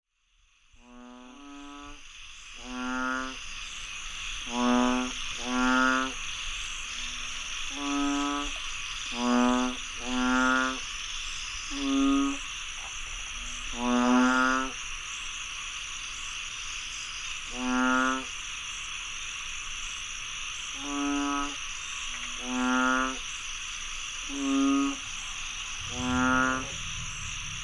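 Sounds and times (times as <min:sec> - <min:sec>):
steady high insect hum: 0:00.1 - 0:27.6
frogs croaking in a chorus: 0:00.6 - 0:27.6.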